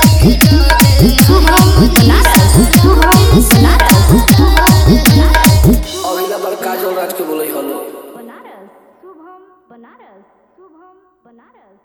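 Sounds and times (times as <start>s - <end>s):
hard bass DJ mix: 0.0s - 6.3s.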